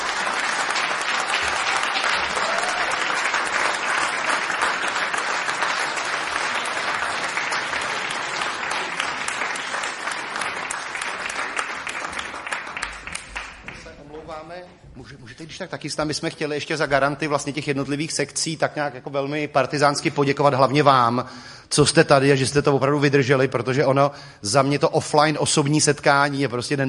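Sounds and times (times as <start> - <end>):
audience applause in a hall: 0.0 - 14.1
speech: 15.5 - 26.8.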